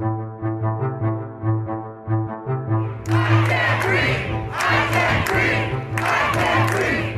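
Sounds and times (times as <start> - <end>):
low pulsing tonal drone: 0.0 - 7.1
protesters shouting and chanting in US streets after George Floyd's death: 3.0 - 7.1.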